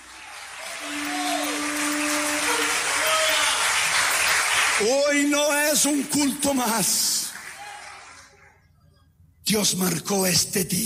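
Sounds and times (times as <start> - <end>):
audience applause: 0.0 - 8.4
speech: 4.8 - 7.2, 9.5 - 10.8.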